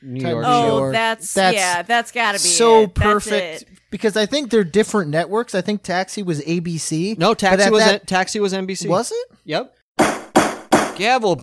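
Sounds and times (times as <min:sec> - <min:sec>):
speech: 0:00.0 - 0:10.2, 0:11.0 - 0:11.4
gavel bangs: 0:10.0 - 0:11.1.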